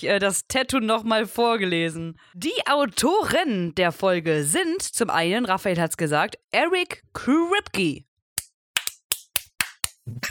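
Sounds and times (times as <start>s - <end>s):
speech: 0.0s - 8.1s, 10.1s - 10.2s
single person clapping: 8.8s - 10.2s.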